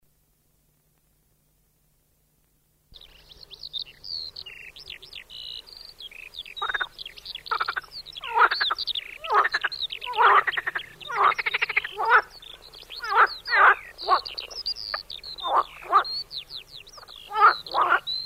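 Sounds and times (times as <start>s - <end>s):
marsh frog croaking in pulsed rattling bursts: 6.1s - 16.2s, 16.8s - 18.2s.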